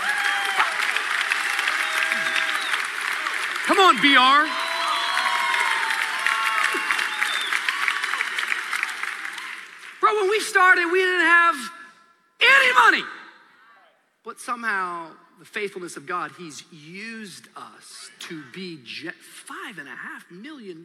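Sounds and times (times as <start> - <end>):
audience clapping and cheering: 0.0 - 11.0
speech: 3.7 - 4.6, 10.1 - 11.8, 12.5 - 13.2, 14.3 - 20.8.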